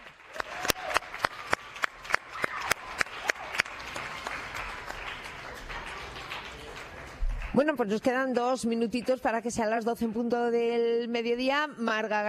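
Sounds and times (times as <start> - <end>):
studio audience applause: 0.0 - 7.8
speech: 7.6 - 12.2.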